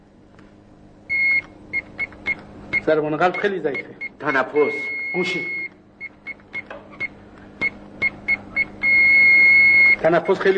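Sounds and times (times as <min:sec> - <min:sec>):
medical monitor connected to a patient beeping: 0:01.1 - 0:10.5
speech: 0:02.9 - 0:05.6, 0:10.0 - 0:10.5.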